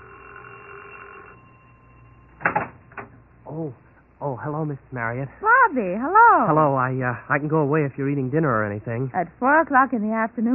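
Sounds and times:
doorbell ringing with a harsh buzzing tone: 0.0 - 3.4
speech: 3.5 - 10.5.

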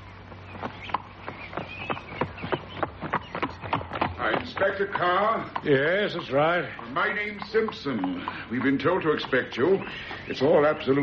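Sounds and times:
horses' hooves clip-clopping: 0.0 - 11.0
low continuous hum: 0.0 - 11.0
speech: 4.6 - 11.0.

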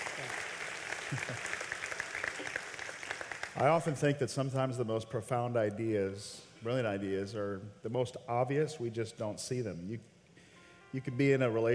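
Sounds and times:
round of applause: 0.0 - 3.9
speech: 1.1 - 1.5, 3.6 - 10.1, 10.9 - 11.7.

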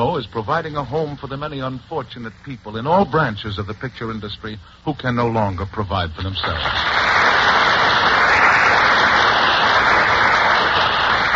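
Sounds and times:
speech: 0.0 - 7.3
audience applause: 6.4 - 11.3.

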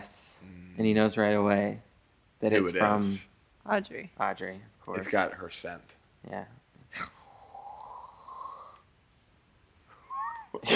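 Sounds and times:
speech: 0.8 - 7.2
person imitating sniffing with their mouth: 6.9 - 8.8.

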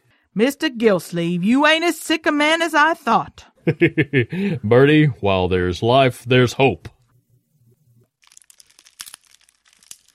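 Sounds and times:
speech: 0.4 - 6.9
laughter: 3.7 - 4.6
fire crackling in a fireplace: 8.0 - 10.1.

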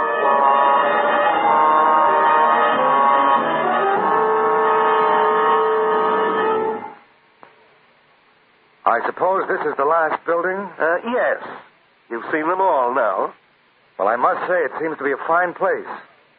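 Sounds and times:
alarm bell ringing: 0.0 - 7.0
speech: 9.0 - 13.4, 14.0 - 16.3.

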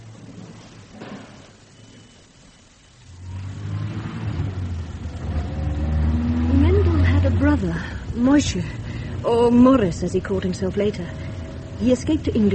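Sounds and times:
car engine starting and revving: 3.2 - 12.5
speech: 7.6 - 12.5.

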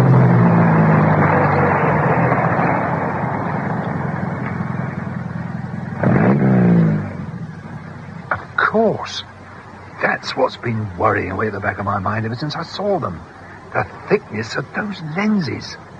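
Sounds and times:
car engine running as the car stops: 0.0 - 15.9
speech: 10.4 - 15.9.

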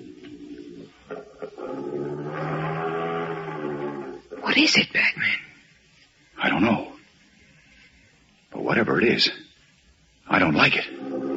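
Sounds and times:
low throaty growl: 0.0 - 4.5, 10.8 - 11.3
speech: 4.5 - 5.4, 8.7 - 9.4, 10.6 - 10.9.

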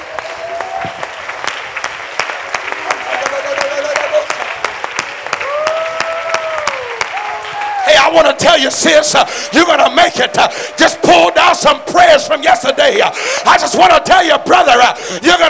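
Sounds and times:
audience clapping hands: 0.0 - 13.1
speech: 8.2 - 15.4.

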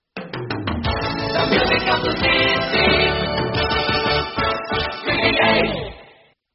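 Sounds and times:
jingle: 0.9 - 6.0.

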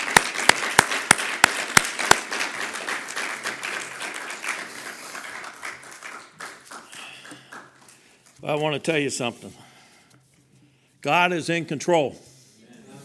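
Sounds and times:
audience clapping: 0.0 - 8.4
speech: 8.4 - 9.6, 11.0 - 12.3.

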